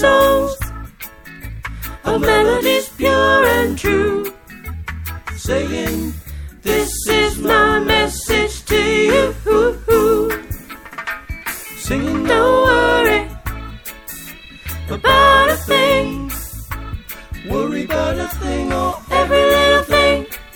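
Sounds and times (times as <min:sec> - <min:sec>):
soprano singing: 0:00.0 - 0:00.6, 0:02.1 - 0:04.3, 0:06.7 - 0:10.5, 0:11.8 - 0:13.5, 0:14.9 - 0:16.4, 0:17.5 - 0:20.3.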